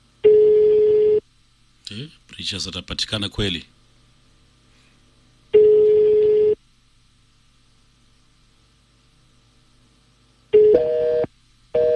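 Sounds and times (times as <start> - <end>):
ringing tones of an unanswered telephone call: 0.2 - 1.2, 5.6 - 6.6, 10.6 - 11.9
speech: 1.9 - 3.8.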